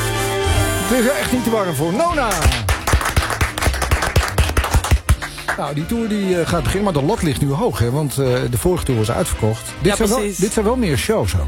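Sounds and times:
speech: 0.9 - 2.7, 5.6 - 11.4
crowd clapping in a steady quick rhythm: 2.0 - 6.0.

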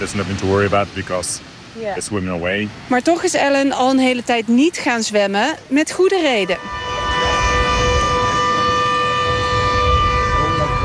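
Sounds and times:
speech: 0.0 - 6.8
shark alarm siren at a beach: 6.2 - 10.8.

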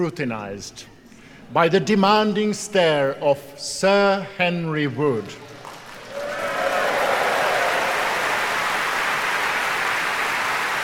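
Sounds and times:
speech: 0.0 - 5.5
large concert audience applause: 5.6 - 10.8.

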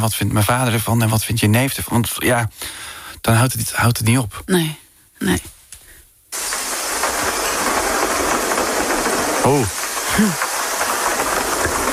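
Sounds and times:
speech: 0.0 - 5.5, 9.5 - 10.5
heavy rain downpour: 6.4 - 11.9.

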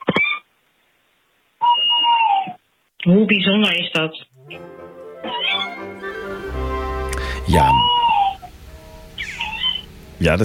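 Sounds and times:
tawny owl calling: 1.6 - 2.6, 5.2 - 6.4, 7.2 - 10.0
speech: 3.1 - 4.7, 10.2 - 10.4.

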